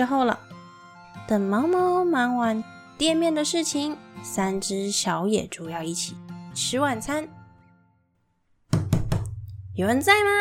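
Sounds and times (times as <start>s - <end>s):
speech: 0.0s - 0.5s, 1.2s - 7.4s, 9.8s - 10.4s
knocking on a door: 8.7s - 9.5s.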